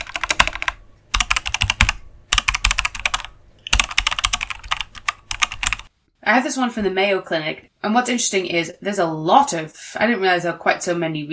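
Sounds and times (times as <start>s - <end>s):
typing on a computer keyboard searching online: 0.0s - 5.9s
speech: 6.3s - 11.3s.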